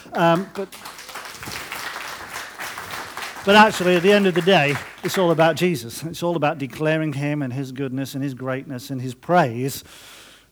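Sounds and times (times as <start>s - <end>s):
round of applause: 0.0s - 6.4s
laughter: 0.0s - 9.6s
speech: 0.2s - 1.6s, 3.4s - 10.5s.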